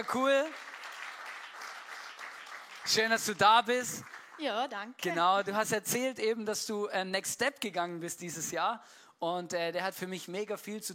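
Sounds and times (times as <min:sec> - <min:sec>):
speech: 0:00.0 - 0:00.7, 0:02.8 - 0:10.9
audience applause: 0:00.0 - 0:04.6.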